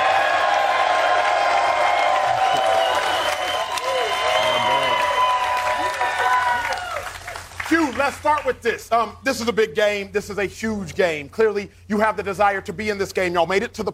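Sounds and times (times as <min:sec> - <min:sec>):
voices shouting and whooping: 0:00.0 - 0:07.2
audience clapping: 0:00.0 - 0:08.7
speech: 0:08.2 - 0:13.9.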